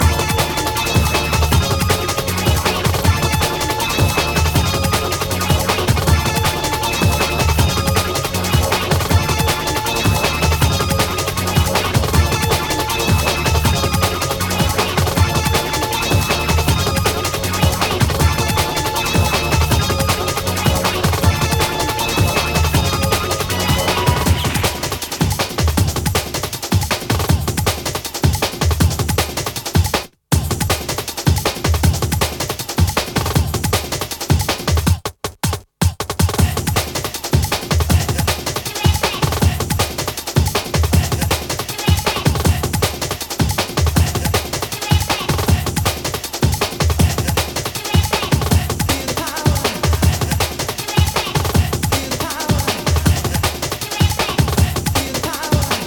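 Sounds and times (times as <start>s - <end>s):
drums: 0.0s - 55.8s.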